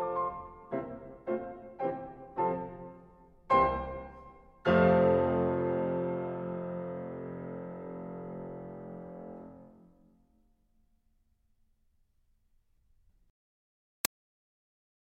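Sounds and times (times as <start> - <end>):
classical music allegretto: 0.0 - 10.2.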